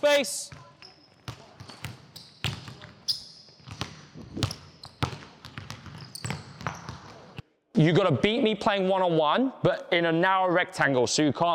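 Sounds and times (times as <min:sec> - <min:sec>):
speech: 0:00.0 - 0:00.6, 0:07.8 - 0:11.5
basketballs bouncing during a youth layup drill at a coaching clinic: 0:00.5 - 0:07.4.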